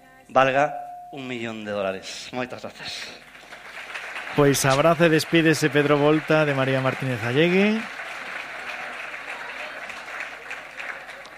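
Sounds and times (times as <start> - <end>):
speech: 0.3 - 3.3, 4.3 - 8.0
audience applauding: 2.6 - 11.3.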